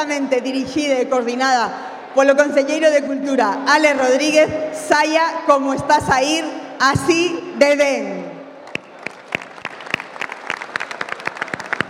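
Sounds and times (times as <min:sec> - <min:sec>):
speech: 0:00.0 - 0:08.2
audience applause: 0:08.7 - 0:11.8.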